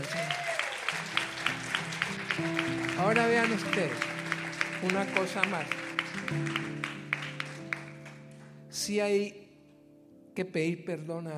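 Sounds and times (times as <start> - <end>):
audience applause: 0.0 - 8.5
sustained keyboard notes: 2.3 - 8.4
speech: 2.4 - 4.1, 4.8 - 6.7, 8.8 - 9.4, 10.4 - 11.3.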